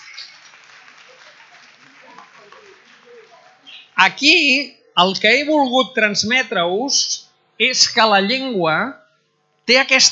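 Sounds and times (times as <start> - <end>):
applause: 0.0 - 3.7
speech: 4.0 - 9.0, 9.7 - 10.1.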